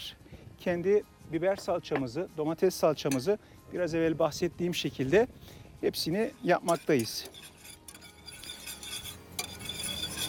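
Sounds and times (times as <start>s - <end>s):
speech: 0.1s - 7.5s
utensil stirring food in a pot: 6.6s - 10.2s.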